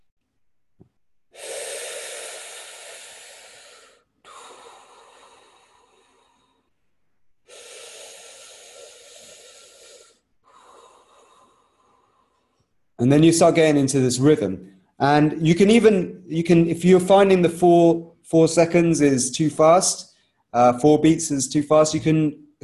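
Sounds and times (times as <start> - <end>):
slow pursed-lip breathing out: 1.3 - 13.0
speech: 13.0 - 22.6.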